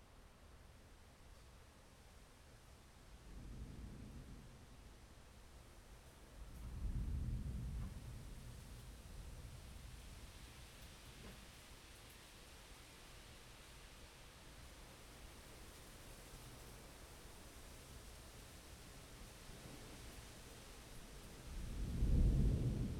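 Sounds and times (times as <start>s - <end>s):
thunderstorm: 3.2s - 5.3s, 6.3s - 11.6s, 19.5s - 22.9s.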